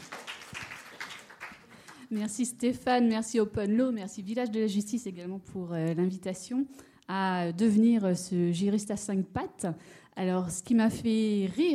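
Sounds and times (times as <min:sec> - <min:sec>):
audience applause: 0:00.0 - 0:02.0
speech: 0:02.1 - 0:11.7.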